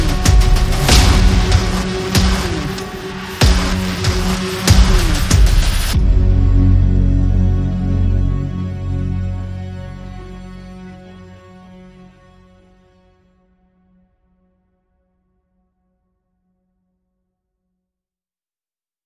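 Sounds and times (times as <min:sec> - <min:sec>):
strings: 0:00.0 - 0:13.4.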